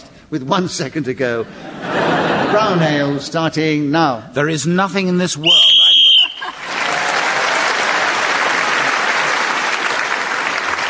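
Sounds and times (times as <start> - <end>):
speech: 0.3 - 5.8
laughter: 1.4 - 3.3, 6.2 - 7.6
referee whistle blown: 5.4 - 6.6
crowd applauding: 6.1 - 10.8.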